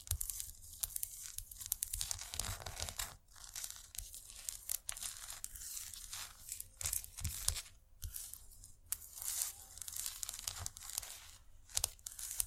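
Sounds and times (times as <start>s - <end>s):
scratchy tapping: 0.1s - 12.4s.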